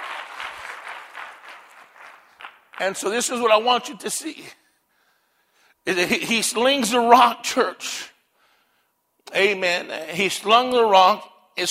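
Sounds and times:
audience clapping: 0:00.0 - 0:03.2
speech: 0:02.8 - 0:04.6, 0:05.8 - 0:08.1, 0:09.3 - 0:11.6.

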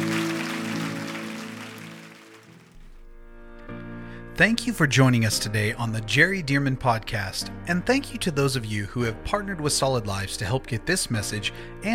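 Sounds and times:
audience clapping: 0:00.0 - 0:03.0
sustained keyboard chords: 0:00.0 - 0:03.4
speech: 0:04.4 - 0:11.9.

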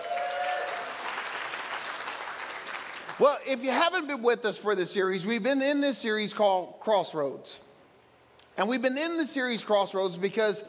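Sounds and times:
church congregation applauding for church campuses joining the service: 0:00.0 - 0:03.3
speech: 0:03.2 - 0:07.7, 0:08.6 - 0:10.6.

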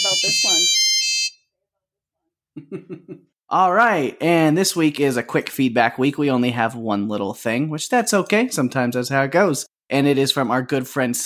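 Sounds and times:
feedback phone ringing sound effect: 0:00.0 - 0:01.4
speech: 0:00.2 - 0:00.8, 0:02.6 - 0:11.2
laughter: 0:02.6 - 0:03.3.

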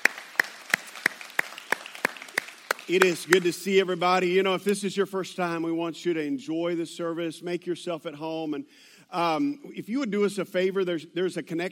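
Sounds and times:
hand claps welcoming guests at a morning service: 0:00.0 - 0:03.6
speech: 0:02.9 - 0:11.6.

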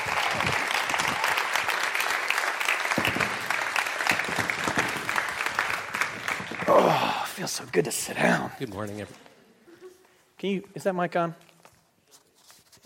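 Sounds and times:
audience applause welcoming a speaker: 0:00.0 - 0:07.6
speech: 0:06.7 - 0:09.3, 0:10.4 - 0:11.5.

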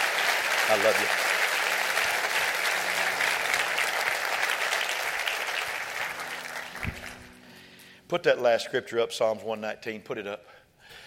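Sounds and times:
audience clapping: 0:00.0 - 0:07.4
speech: 0:00.7 - 0:01.3, 0:08.1 - 0:10.6.

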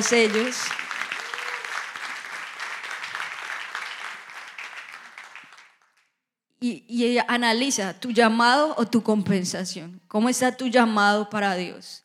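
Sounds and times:
speech: 0:00.0 - 0:00.8, 0:06.6 - 0:12.0
audience applause: 0:00.0 - 0:06.0.

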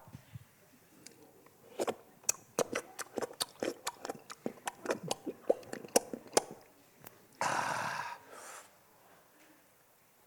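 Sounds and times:
person imitating dog lapping water: 0:01.8 - 0:06.6.

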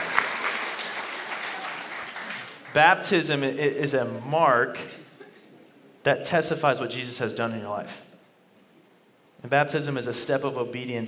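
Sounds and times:
congregation clapping at a church baptism celebration: 0:00.0 - 0:03.4
speech: 0:02.8 - 0:05.0, 0:06.0 - 0:08.1, 0:09.4 - 0:11.0.

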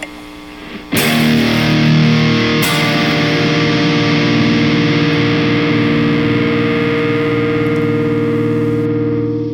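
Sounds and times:
distorted electric guitar chord through amp modeler: 0:00.6 - 0:09.5.

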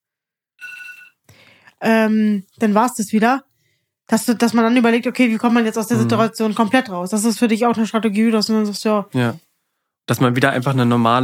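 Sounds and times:
alarm clock ringing: 0:00.6 - 0:01.2
speech: 0:01.8 - 0:03.5, 0:04.1 - 0:09.4, 0:10.1 - 0:11.2.

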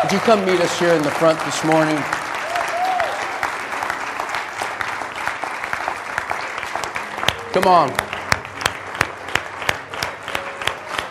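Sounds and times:
church congregation clapping to welcome mothers: 0:00.0 - 0:11.0
speech: 0:00.1 - 0:02.2, 0:07.6 - 0:08.1.

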